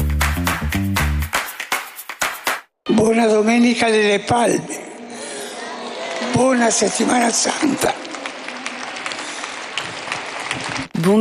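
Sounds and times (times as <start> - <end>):
large crowd applauding in Saint Peter's Square after Palm Sunday Mass: 0.0 - 2.7, 5.9 - 11.1
speech: 3.0 - 4.9, 6.4 - 8.1.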